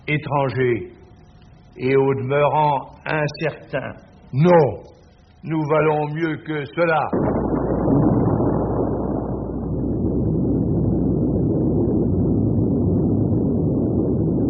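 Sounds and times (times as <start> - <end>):
speech: 0.1 - 1.0, 1.8 - 8.1
simulated nuclear explosion sounds: 7.1 - 14.4.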